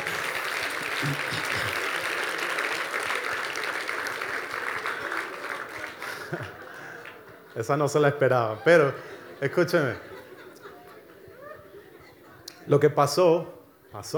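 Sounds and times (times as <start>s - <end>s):
audience applause: 0.0s - 8.4s
laughter: 0.0s - 12.8s
speech: 1.0s - 1.9s, 7.6s - 10.1s, 12.7s - 14.1s.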